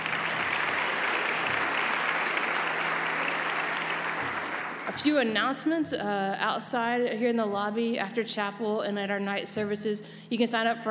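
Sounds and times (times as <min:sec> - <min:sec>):
audience applause: 0:00.0 - 0:05.2
speech: 0:05.0 - 0:10.8.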